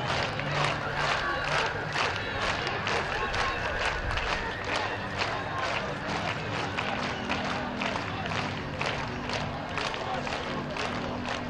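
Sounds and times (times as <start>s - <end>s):
protest crowd in Belarus clapping rhythmically: 0.0s - 11.4s.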